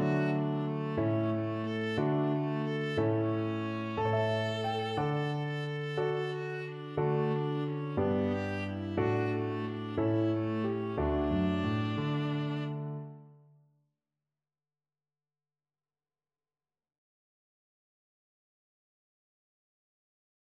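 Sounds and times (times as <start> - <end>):
viola playing a lullaby: 0.0 - 13.3.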